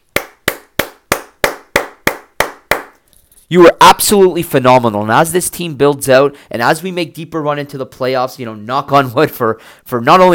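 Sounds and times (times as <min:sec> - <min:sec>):
hands clapping in applause: 0:00.0 - 0:03.0
speech: 0:03.5 - 0:10.3.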